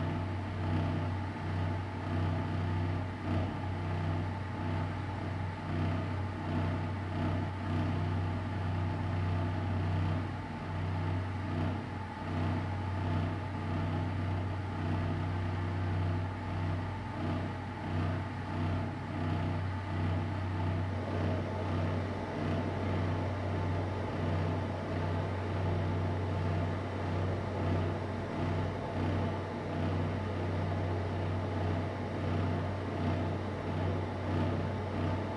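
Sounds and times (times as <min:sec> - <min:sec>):
dark pulsating ventilation in an empty school toilet: 0:00.0 - 0:35.3.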